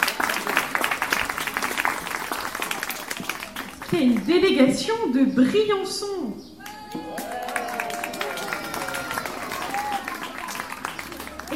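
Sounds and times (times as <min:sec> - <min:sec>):
audience applause: 0:00.0 - 0:04.2, 0:06.6 - 0:11.5
speech: 0:03.9 - 0:06.5.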